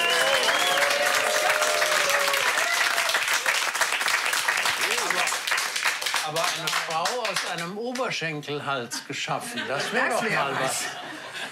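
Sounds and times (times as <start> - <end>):
whistles and cheering voices: 0.0 - 3.2
audience applause: 0.0 - 7.8
speech: 6.3 - 11.2
laughter: 8.8 - 11.4.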